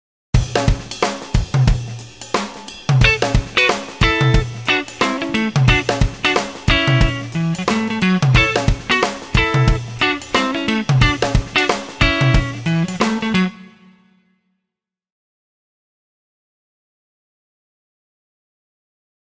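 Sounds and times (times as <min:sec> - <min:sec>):
rhythm guitar: 0:00.4 - 0:13.9.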